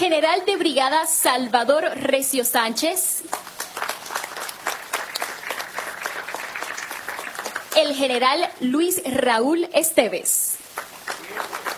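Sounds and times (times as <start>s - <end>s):
speech: 0.0s - 3.9s, 7.8s - 10.4s
audience applause: 3.3s - 8.1s, 10.7s - 11.7s.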